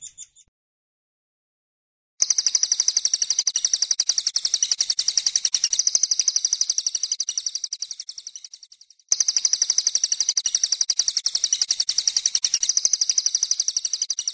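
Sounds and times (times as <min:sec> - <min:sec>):
Oriental magpie-robin singing: 0:00.0 - 0:00.5, 0:02.2 - 0:14.3.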